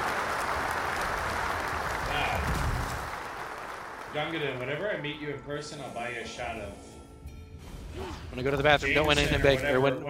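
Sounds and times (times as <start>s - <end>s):
canned applause sound effect on a slots gambling show: 0.0s - 5.1s
speech: 4.2s - 6.9s, 8.0s - 10.0s.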